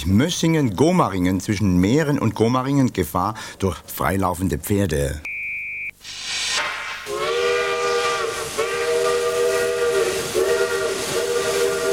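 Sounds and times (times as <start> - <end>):
speech: 0.0 - 5.3
steam train whistle: 6.2 - 11.9.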